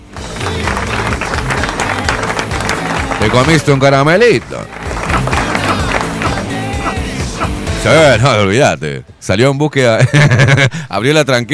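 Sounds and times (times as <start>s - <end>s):
applause on a talk show: 0.0s - 6.6s
speech: 3.3s - 4.9s, 7.8s - 11.5s
laughter: 4.7s - 7.6s, 10.0s - 10.9s.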